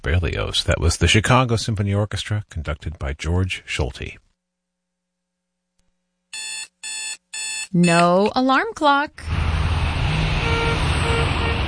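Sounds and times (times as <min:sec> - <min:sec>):
speech: 0:00.0 - 0:04.2, 0:07.7 - 0:09.3
road traffic roar: 0:09.2 - 0:11.6
car horn toots: 0:10.4 - 0:11.6.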